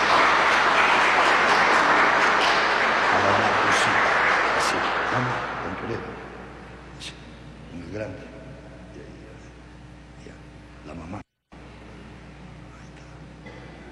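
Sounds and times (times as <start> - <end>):
audience applauding in church: 0.0 - 6.2.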